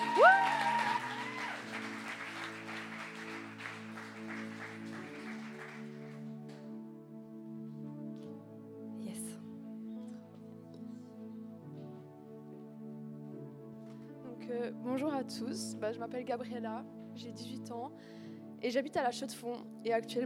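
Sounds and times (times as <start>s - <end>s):
audience applause: 0.0s - 6.4s
speech: 14.5s - 20.2s.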